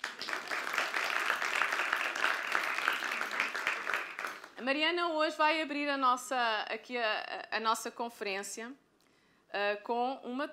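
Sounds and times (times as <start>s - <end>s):
audience applause: 0.0s - 4.5s
speech: 4.6s - 8.8s, 9.5s - 10.5s.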